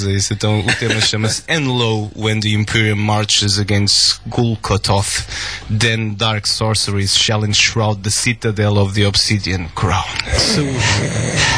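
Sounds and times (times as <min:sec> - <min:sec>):
speech: 0:00.0 - 0:11.5
laughter: 0:00.4 - 0:01.5
person coughing: 0:00.7 - 0:01.4.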